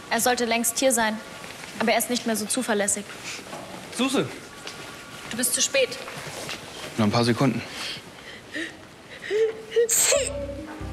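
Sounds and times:
speech: 0.1 - 4.4, 5.3 - 6.3, 7.0 - 8.1
person whimpering: 9.3 - 10.4
sharp hissing sneeze: 9.9 - 10.3.

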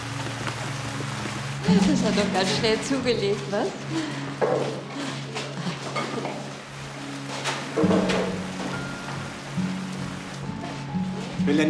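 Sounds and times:
heavy rain: 0.0 - 11.4
speech: 1.7 - 5.1, 11.4 - 11.6.

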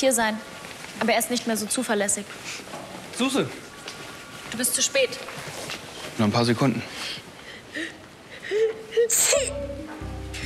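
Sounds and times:
speech: 0.0 - 3.6, 4.5 - 5.6, 6.2 - 7.3
sneeze: 9.1 - 9.5.

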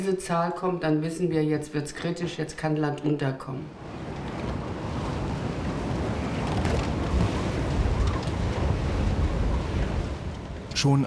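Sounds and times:
speech: 0.0 - 4.0, 10.8 - 11.0
North Sea churning surf with hissing spray: 3.7 - 11.0
North Sea storm wind buffeting the microphone: 3.7 - 11.0.

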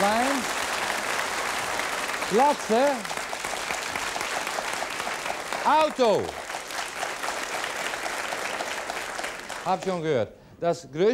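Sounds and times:
audience applause: 0.0 - 9.9
speech: 2.3 - 3.2, 5.6 - 6.4, 9.6 - 11.1.

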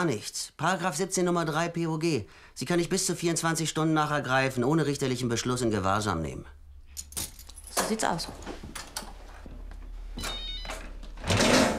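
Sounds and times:
speech: 0.0 - 6.6, 7.8 - 8.7
mobile phone ringing: 10.2 - 10.8.

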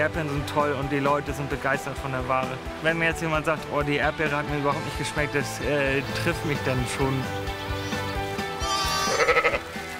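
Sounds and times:
speech: 0.0 - 7.7
ewes and newborn lambs bleating on a North Frisian dike: 7.6 - 9.8.

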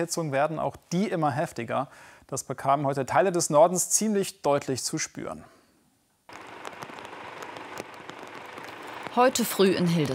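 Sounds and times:
speech: 0.0 - 5.6, 9.2 - 10.1
heavy rain in a storm: 6.3 - 10.1.

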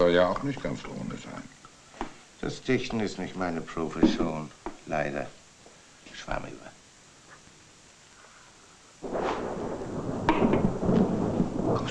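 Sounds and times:
speech: 0.1 - 1.1, 2.4 - 5.4, 6.2 - 6.8
rolling thunder during a thunderstorm: 9.0 - 11.8.

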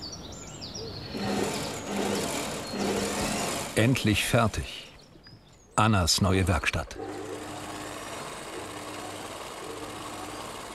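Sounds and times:
sewing machine stitching a suit in a tailoring workshop: 1.2 - 4.3, 7.0 - 10.7
speech: 3.8 - 4.8, 5.8 - 7.2.

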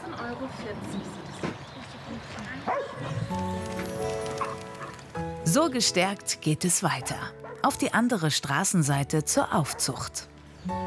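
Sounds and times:
speech: 0.3 - 1.5, 2.5 - 4.7, 5.5 - 10.8
dog barking: 2.7 - 3.2, 4.4 - 4.9, 9.7 - 10.0.

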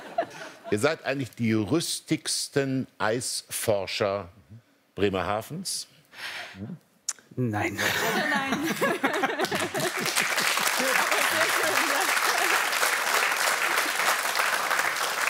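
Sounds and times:
laughter: 0.0 - 0.8, 7.7 - 12.8
speech: 0.7 - 4.4, 5.0 - 6.8, 7.4 - 9.6
audience applause: 9.2 - 15.2.

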